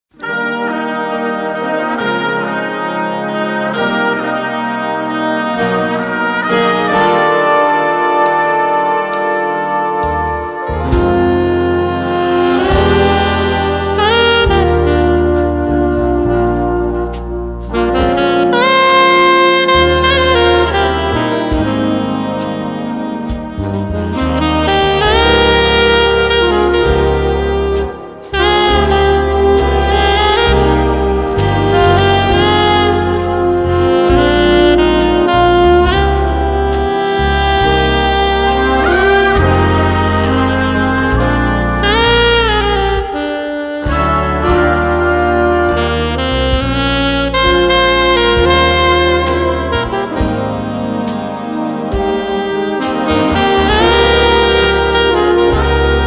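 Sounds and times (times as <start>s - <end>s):
alto saxophone: 0.1s - 56.0s.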